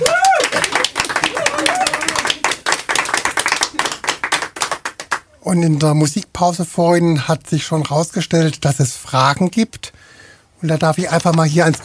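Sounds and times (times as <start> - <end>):
brief voices and a whoop: 0.0 - 2.6
audience applause: 0.0 - 5.2
speech: 5.5 - 10.0, 10.6 - 11.8.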